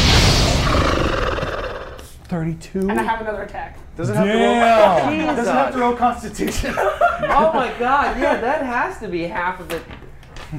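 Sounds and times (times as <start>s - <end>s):
monster's horrible scream sound effect: 0.0s - 2.1s
speech: 2.3s - 10.5s
laughter: 4.4s - 8.7s.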